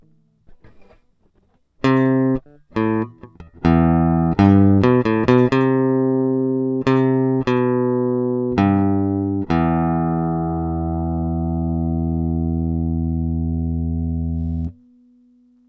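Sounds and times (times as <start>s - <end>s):
electric guitar: 0.0s - 14.8s.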